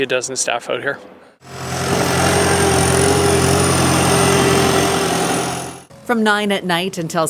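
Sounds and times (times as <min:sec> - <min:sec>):
speech: 0:00.0 - 0:02.0, 0:06.1 - 0:07.2
snow-clearing heavy machinery engines idling: 0:01.4 - 0:05.9.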